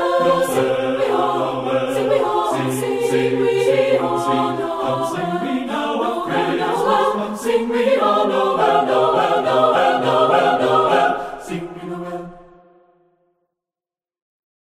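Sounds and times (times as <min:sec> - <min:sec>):
SATB choir singing: 0:00.0 - 0:13.1.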